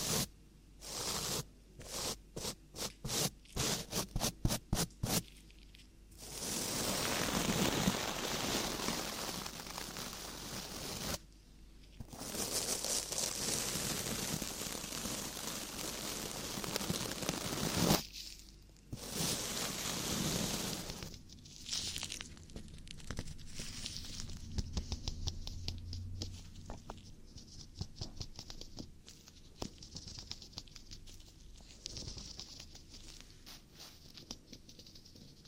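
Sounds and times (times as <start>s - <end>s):
ear cleaning scratching and rubbing: 0.0s - 11.2s, 11.8s - 35.4s
softer crackling and fine scraping: 4.8s - 35.4s
ear cleaning crisp taps and clicks: 24.2s - 31.1s.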